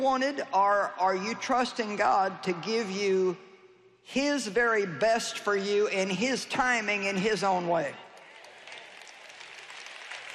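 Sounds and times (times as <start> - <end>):
speech: 0.0 - 8.0
audience clapping: 8.1 - 10.3.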